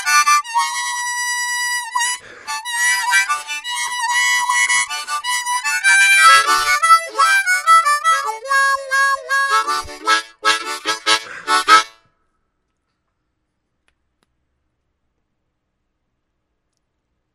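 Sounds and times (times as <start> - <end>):
blue soul music: 0.0 - 12.0
harmonica: 0.0 - 12.1.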